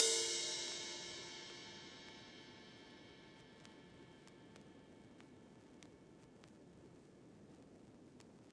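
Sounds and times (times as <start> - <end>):
vinyl ride cymbal: 0.0 - 5.1.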